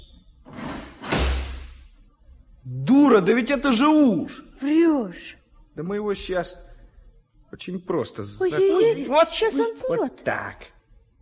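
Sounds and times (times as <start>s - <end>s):
door unhooked and flung open: 0.4s - 1.8s
speech: 2.7s - 6.7s, 7.5s - 10.8s.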